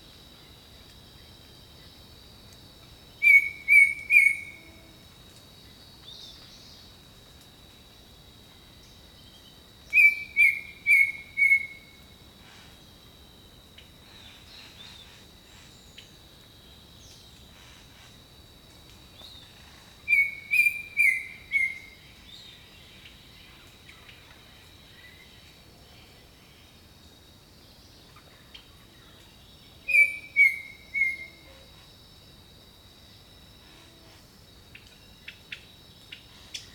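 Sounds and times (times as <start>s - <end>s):
insects droning: 0.0s - 36.7s
bird whistling: 3.2s - 4.6s, 10.0s - 11.8s, 20.1s - 21.9s, 29.9s - 31.4s.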